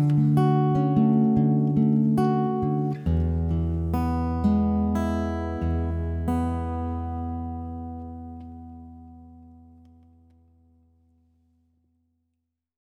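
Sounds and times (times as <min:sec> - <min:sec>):
live acoustic music: 0:00.0 - 0:09.8.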